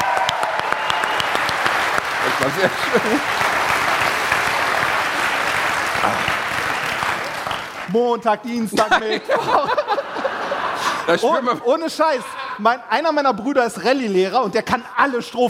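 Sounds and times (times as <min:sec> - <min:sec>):
audience applause: 0:00.0 - 0:08.0
laughter: 0:02.2 - 0:04.4, 0:08.7 - 0:12.9
speech: 0:02.4 - 0:03.5, 0:06.0 - 0:06.4, 0:07.9 - 0:09.9, 0:11.1 - 0:15.4.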